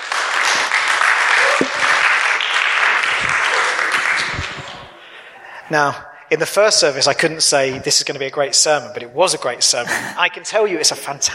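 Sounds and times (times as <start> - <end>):
audience applause at a church service welcoming a speaker: 0.0 - 5.2
speech: 5.7 - 11.3.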